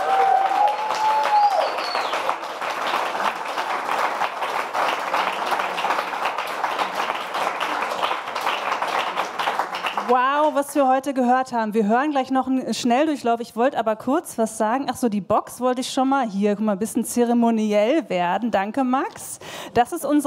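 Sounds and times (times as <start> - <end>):
audience applause for the performers: 0.0 - 10.6
whistles from the crowd: 0.7 - 2.3
speech: 10.1 - 20.2.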